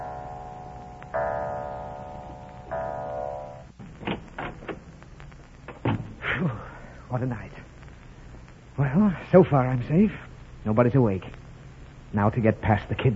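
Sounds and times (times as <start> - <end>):
resonant clock chimes: 0.0 - 3.8
door opening clicks and knocks: 3.8 - 4.8, 5.7 - 6.2
speech: 7.1 - 7.6, 8.8 - 11.4, 12.1 - 13.1.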